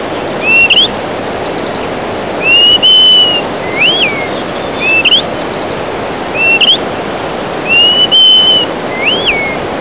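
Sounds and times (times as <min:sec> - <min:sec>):
Greater Pewee calling: 0:00.2 - 0:01.8, 0:02.3 - 0:05.6, 0:06.3 - 0:06.9, 0:07.6 - 0:09.7.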